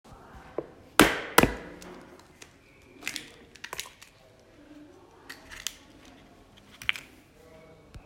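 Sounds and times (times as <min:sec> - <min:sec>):
egg cracking open: 0:01.0 - 0:07.2.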